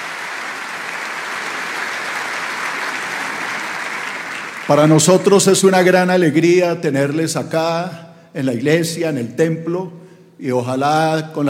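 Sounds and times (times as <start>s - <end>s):
crowd applause: 0.0s - 5.7s
speech: 4.7s - 11.4s.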